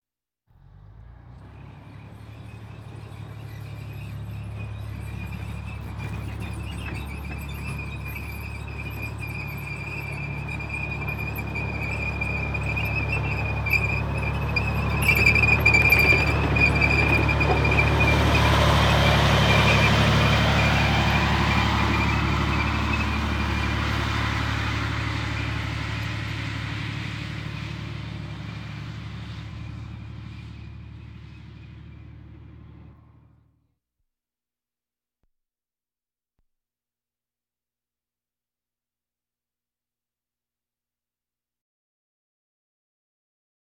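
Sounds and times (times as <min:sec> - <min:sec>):
military vehicles: 0:00.6 - 0:33.6.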